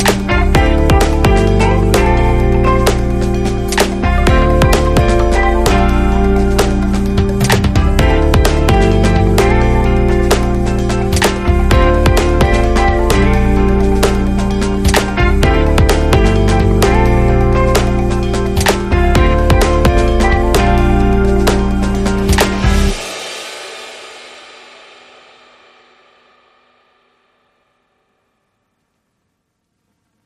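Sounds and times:
electronic Latin party instrumental music: 0:00.0 - 0:23.3.

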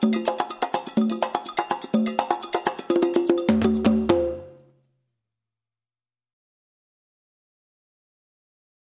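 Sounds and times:
calypso hand percussion loop: 0:00.0 - 0:04.6.

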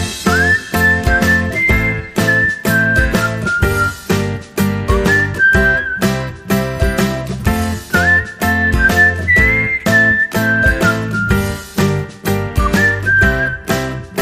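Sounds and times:
person whistling: 0:00.2 - 0:07.1, 0:07.6 - 0:11.7, 0:12.5 - 0:14.0.

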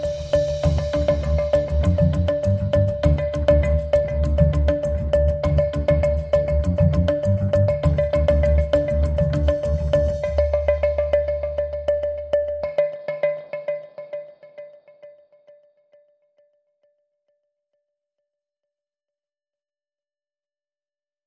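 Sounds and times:
drum and bass music: 0:00.0 - 0:13.1.

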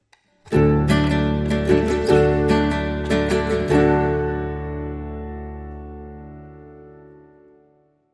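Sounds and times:
fireside jig music sting: 0:00.5 - 0:05.9.

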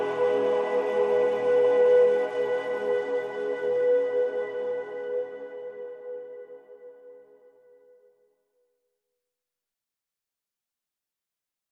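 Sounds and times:
choir singing: 0:00.0 - 0:07.1
flute: 0:00.0 - 0:08.3.

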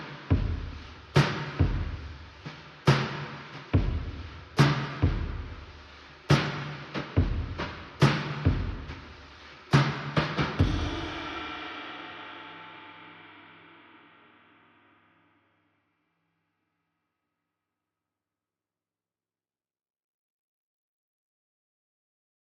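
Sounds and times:
drums: 0:00.0 - 0:14.9.

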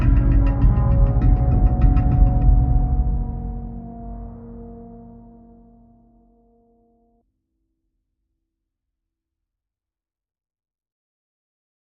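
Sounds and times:
drums: 0:00.0 - 0:03.8
bass: 0:00.0 - 0:07.0.

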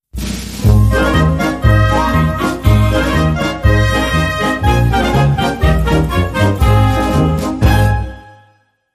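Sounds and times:
jingle: 0:00.6 - 0:08.5.

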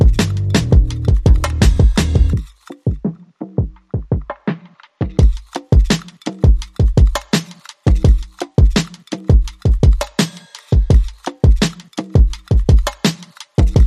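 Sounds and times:
bass: 0:00.0 - 0:02.4
drums: 0:00.0 - 0:13.8.

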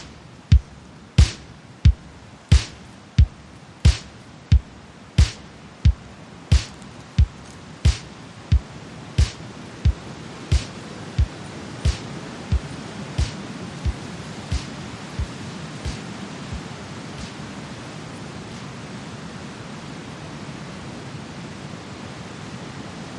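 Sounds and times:
drums: 0:00.0 - 0:17.4.

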